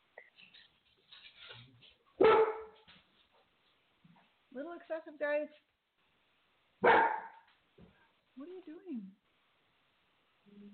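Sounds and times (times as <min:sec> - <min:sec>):
dog barking: 0:02.2 - 0:02.9, 0:06.8 - 0:07.5
speech: 0:04.6 - 0:05.7, 0:08.4 - 0:09.2.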